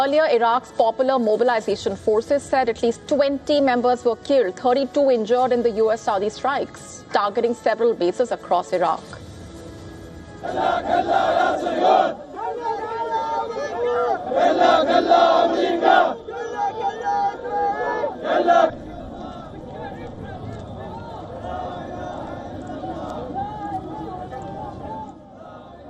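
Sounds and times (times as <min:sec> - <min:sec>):
speech: 0:00.0 - 0:09.2, 0:10.4 - 0:18.9
crowd of Iraqi men chanting slogans: 0:10.4 - 0:25.8.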